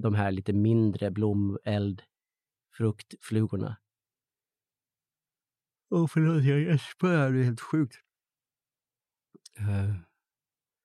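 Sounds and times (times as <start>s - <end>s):
speech: 0.0s - 2.1s, 2.7s - 3.8s, 5.9s - 8.0s, 9.6s - 10.1s
person yawning: 9.5s - 10.0s.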